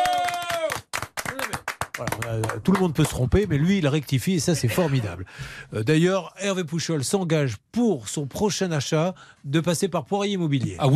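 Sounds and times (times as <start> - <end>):
audience applause: 0.0 - 3.2
speech: 2.0 - 10.9.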